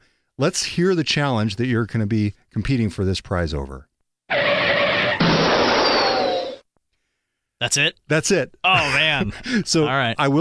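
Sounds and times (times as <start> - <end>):
speech: 0.4 - 3.9, 7.6 - 10.4
classic computer crash sound: 4.7 - 6.6.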